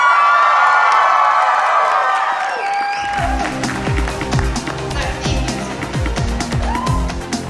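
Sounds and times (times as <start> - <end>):
live audience cheering at Anime Boston 2007: 0.0 - 7.3
scattered claps from live audience at Anime Boston 2007: 0.2 - 7.2.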